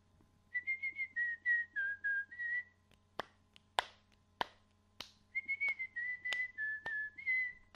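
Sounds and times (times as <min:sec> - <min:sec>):
whistle: 0:00.6 - 0:02.8, 0:05.4 - 0:07.7.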